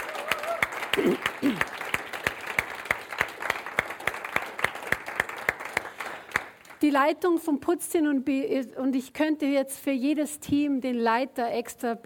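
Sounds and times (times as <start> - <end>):
loud applause for the cleaning team: 0.0 - 6.8
speech: 1.0 - 1.7, 6.8 - 12.0.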